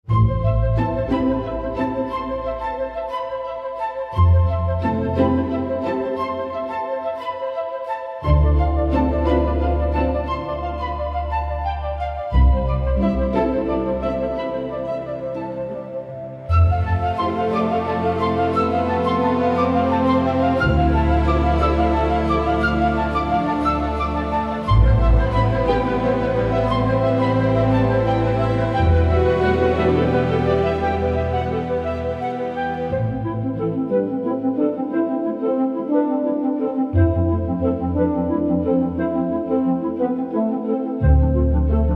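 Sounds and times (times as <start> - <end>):
woodwinds: 0.0 - 41.9.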